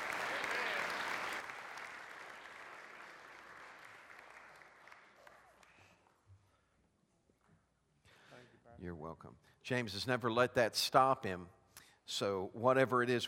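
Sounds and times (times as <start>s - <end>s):
congregation clapping at a church service: 0.0s - 6.2s
speech: 8.8s - 13.2s.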